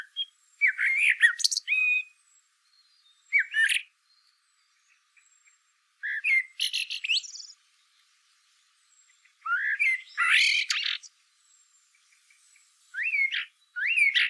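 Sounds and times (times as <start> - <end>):
common blackbird Turdus merula singing fluty warbling phrases: 0.0 - 7.6, 9.0 - 11.1, 12.9 - 14.2.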